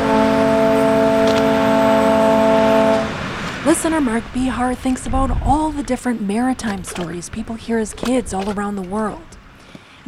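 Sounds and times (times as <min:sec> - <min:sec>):
Lake Express ferry foghorn blast: 0:00.0 - 0:04.0
speech: 0:03.9 - 0:09.3.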